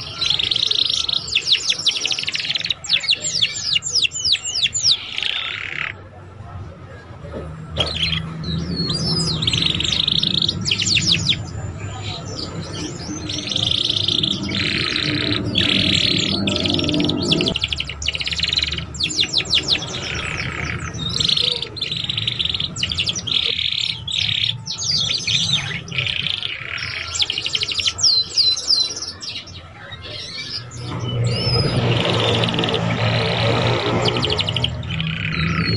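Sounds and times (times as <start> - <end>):
Belgian canary singing: 0.0 - 6.0, 7.8 - 35.7
low hum: 12.4 - 18.0.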